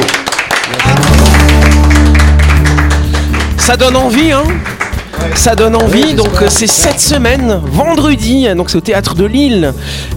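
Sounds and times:
audience applause: 0:00.0 - 0:07.1
speech: 0:03.7 - 0:10.1.

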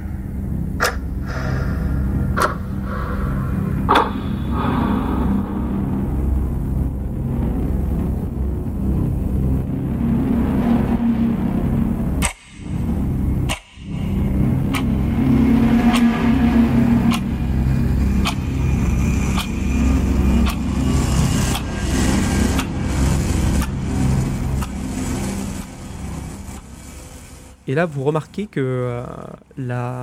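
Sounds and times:
low rumbling drone: 0:00.0 - 0:30.0
video game soundtrack music: 0:00.3 - 0:27.6
sharp percussive hits: 0:00.8 - 0:07.2
speech: 0:27.8 - 0:30.0.

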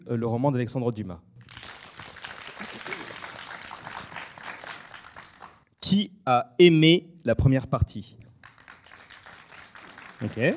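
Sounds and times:
speech: 0:00.1 - 0:01.6, 0:05.9 - 0:08.2, 0:10.2 - 0:10.5
audience applause: 0:01.4 - 0:05.6, 0:08.4 - 0:10.5.

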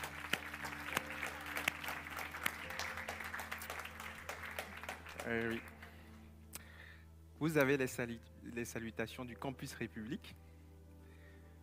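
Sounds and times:
audience clapping: 0:00.0 - 0:06.1
speech: 0:05.2 - 0:05.7, 0:07.4 - 0:10.4.

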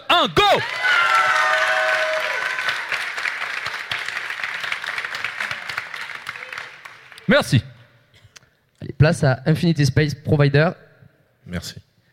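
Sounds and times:
speech: 0:00.2 - 0:01.0, 0:07.3 - 0:07.7, 0:09.0 - 0:10.8, 0:11.5 - 0:11.8
audience applause and cheering at a startup pitch contest: 0:00.4 - 0:07.5.

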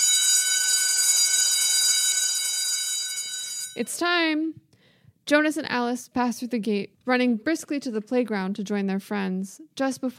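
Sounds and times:
school bell ringing: 0:00.0 - 0:04.1
speech: 0:03.8 - 0:04.6, 0:05.3 - 0:10.1.

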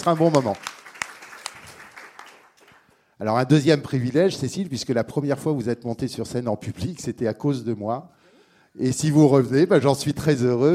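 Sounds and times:
speech: 0:00.0 - 0:00.7, 0:03.2 - 0:08.2, 0:08.8 - 0:10.7
applause: 0:00.0 - 0:03.1.

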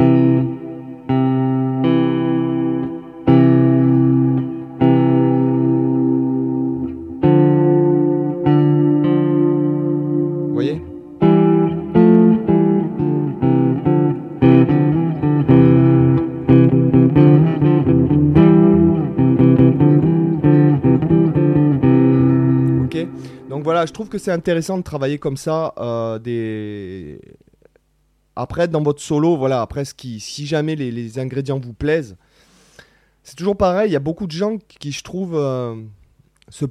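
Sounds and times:
electric guitar playing double stops: 0:00.0 - 0:24.6
speech: 0:23.8 - 0:27.4, 0:28.4 - 0:32.2, 0:33.2 - 0:36.6.

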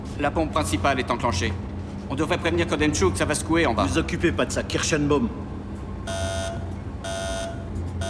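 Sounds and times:
speech: 0:00.2 - 0:06.2
alarm going off: 0:06.1 - 0:08.0.

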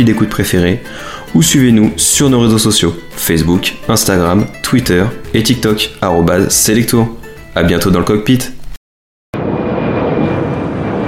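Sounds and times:
speech: 0:00.0 - 0:08.6
airliner landing at Rome: 0:09.4 - 0:11.0.

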